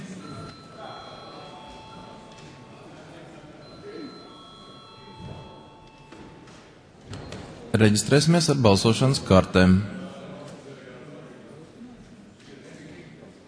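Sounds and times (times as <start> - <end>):
faint murmur in a large chamber: 0.0 - 13.4
parliament registration electronic bell ringing: 0.2 - 3.0, 3.6 - 6.5
speech: 7.8 - 10.0.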